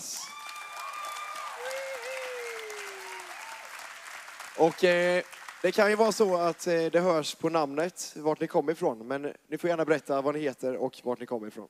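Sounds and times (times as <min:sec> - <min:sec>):
audience applause: 0:00.0 - 0:06.8
speech: 0:04.6 - 0:11.6.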